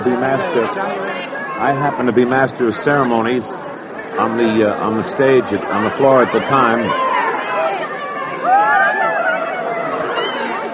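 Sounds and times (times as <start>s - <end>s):
speech: 0.0s - 7.1s
crowd screaming: 5.9s - 10.7s.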